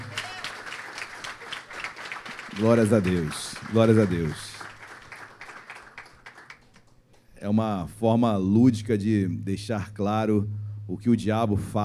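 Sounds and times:
audience applauding: 0.0 - 7.0
speech: 2.6 - 4.5, 7.4 - 11.8.

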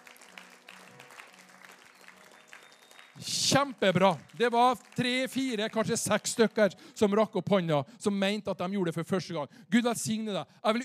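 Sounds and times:
audience clapping: 0.0 - 6.9
speech: 3.2 - 10.8.

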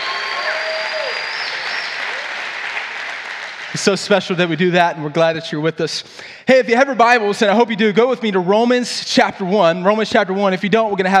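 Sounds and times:
church congregation applauding: 0.0 - 4.2
speech: 3.8 - 11.1.

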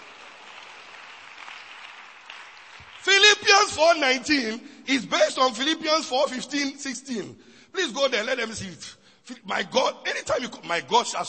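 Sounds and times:
audience clapping: 0.0 - 4.0
speech: 3.1 - 11.2.

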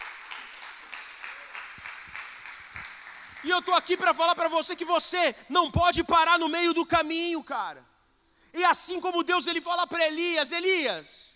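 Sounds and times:
audience applauding: 0.0 - 4.0
speech: 3.4 - 7.9, 8.5 - 11.3.

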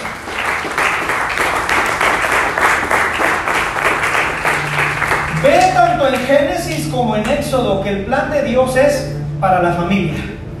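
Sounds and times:
audience applauding loudly: 0.0 - 6.9
speech: 6.1 - 10.3.

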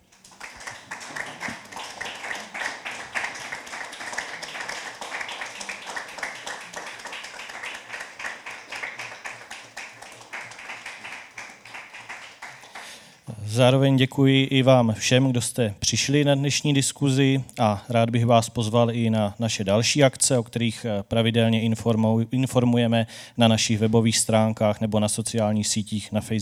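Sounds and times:
audience applause: 0.0 - 13.2
speech: 13.5 - 26.4.

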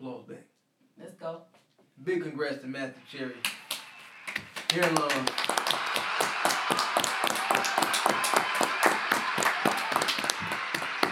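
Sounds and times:
speech: 2.0 - 3.6, 4.7 - 8.4
clapping: 3.4 - 11.1.

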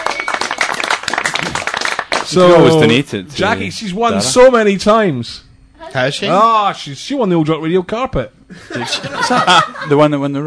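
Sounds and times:
many hands clapping: 0.0 - 2.6
speech: 2.3 - 10.4
laughter: 8.5 - 10.2.

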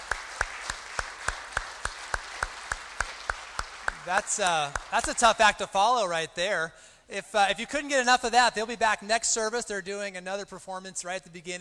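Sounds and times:
audience applause: 0.0 - 5.2
speech: 4.0 - 11.5.

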